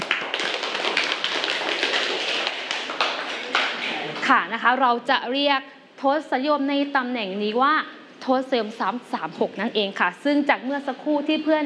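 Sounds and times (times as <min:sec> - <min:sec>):
classroom clapping: 0:00.0 - 0:04.3
speech: 0:04.3 - 0:11.6.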